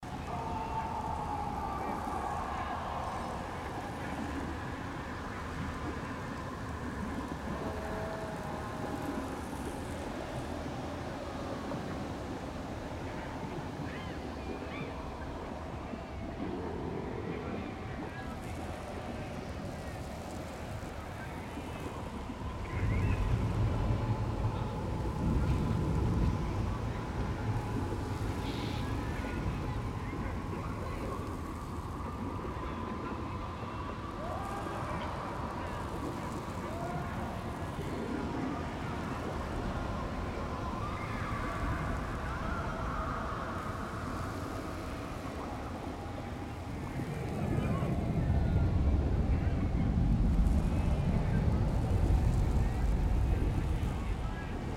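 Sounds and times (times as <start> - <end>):
Avernus ambience: 0.0 - 54.7.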